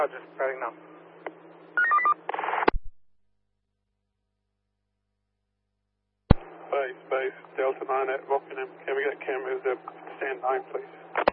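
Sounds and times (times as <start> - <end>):
speech: 0.0 - 1.0, 7.7 - 11.3
electronic telephone tones: 1.8 - 2.6.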